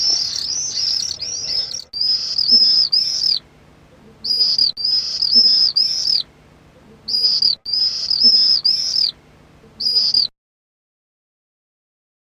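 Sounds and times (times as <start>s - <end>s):
common swift contact calls: 0.0s - 3.5s, 4.2s - 6.3s, 7.1s - 9.2s, 9.8s - 10.3s.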